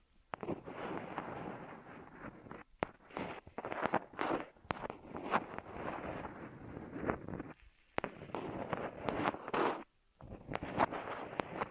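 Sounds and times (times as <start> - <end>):
ear massage rustling friction: 0.4 - 11.7.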